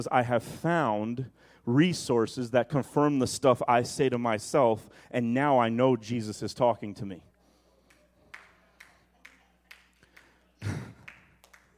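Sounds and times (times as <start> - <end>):
speech: 0.0 - 7.3
slow clap: 7.8 - 11.7.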